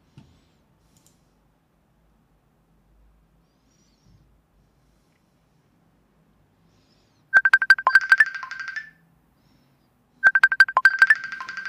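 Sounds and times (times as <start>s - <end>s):
phone ringing with incoming call: 7.4s - 9.0s, 10.2s - 11.6s.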